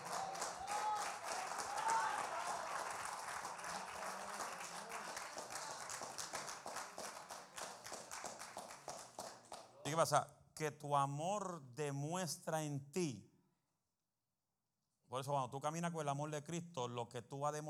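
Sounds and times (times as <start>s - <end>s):
audience applauding: 0.0s - 9.8s
speech: 9.9s - 13.3s, 15.1s - 17.6s.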